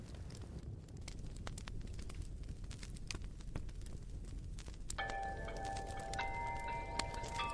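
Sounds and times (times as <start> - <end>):
vinyl record crackle and pops: 0.0 - 7.5
eerie sustained tones of a creepy theme tune from a record: 5.0 - 7.5.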